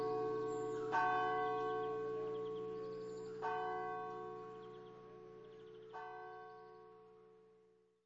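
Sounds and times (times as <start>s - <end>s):
church bells: 0.0s - 7.7s.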